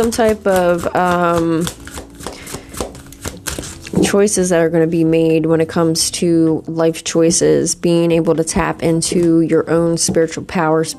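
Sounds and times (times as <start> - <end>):
speech: 0.0 - 2.0, 4.0 - 10.9
tarot cards being shuffled and drawn from a deck during a card reading: 0.0 - 4.2.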